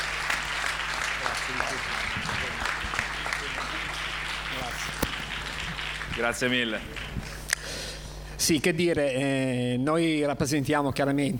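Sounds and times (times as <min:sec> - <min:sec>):
audience applause: 0:00.0 - 0:07.3
speech: 0:01.5 - 0:02.7, 0:04.5 - 0:05.1, 0:06.2 - 0:07.0, 0:08.4 - 0:11.3.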